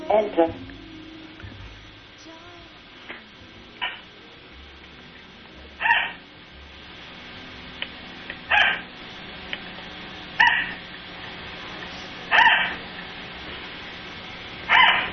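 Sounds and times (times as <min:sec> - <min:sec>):
faint hiss: 0:00.0 - 0:15.1
dog barking for attention: 0:05.8 - 0:06.2, 0:12.4 - 0:12.8.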